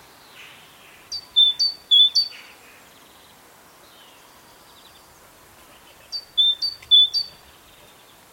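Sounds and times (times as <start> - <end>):
great tit calling: 0.4 - 2.6, 5.8 - 7.4.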